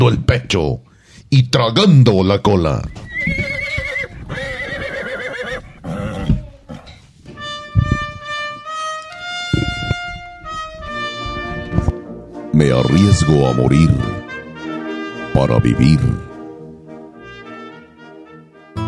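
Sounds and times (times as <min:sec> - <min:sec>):
speech: 0:00.0 - 0:03.5, 0:12.6 - 0:14.2, 0:15.4 - 0:16.2
horse neighing and snorting: 0:02.9 - 0:07.0, 0:09.5 - 0:11.9
horse hooves clip-clopping: 0:02.9 - 0:12.0.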